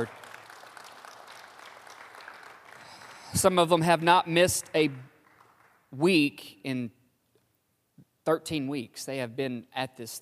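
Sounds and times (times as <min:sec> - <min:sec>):
speech: 0:00.0 - 0:00.2, 0:03.3 - 0:05.1, 0:05.9 - 0:07.0, 0:08.2 - 0:10.2
church congregation applauding the worship team: 0:00.0 - 0:06.0.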